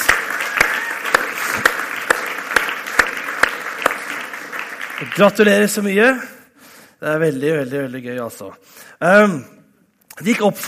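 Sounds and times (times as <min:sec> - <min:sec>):
audience applause: 0:00.0 - 0:05.9
speech: 0:05.0 - 0:06.3, 0:07.0 - 0:09.6, 0:10.2 - 0:10.6.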